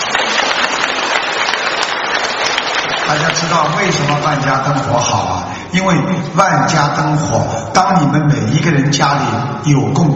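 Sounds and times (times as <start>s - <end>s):
audience applause: 0.0s - 4.8s
speech: 3.2s - 10.1s.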